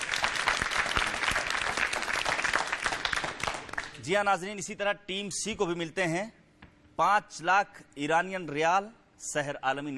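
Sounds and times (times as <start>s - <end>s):
audience applause: 0.0s - 4.0s
speech: 4.0s - 6.4s, 7.0s - 9.9s.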